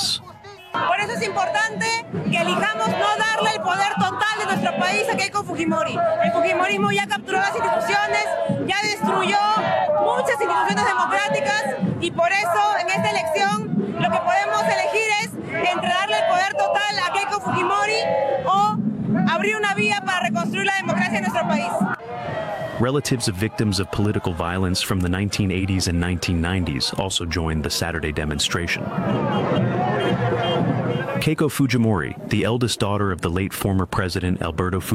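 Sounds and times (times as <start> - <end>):
protest crowd chanting slogans: 0.0 - 24.5, 28.8 - 31.2
speech: 0.7 - 14.9, 15.6 - 34.9.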